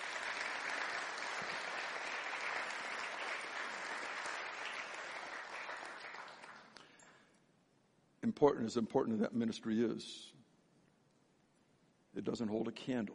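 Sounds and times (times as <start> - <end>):
crowd applause: 0.0 - 6.9
speech: 8.3 - 10.4, 12.2 - 13.1.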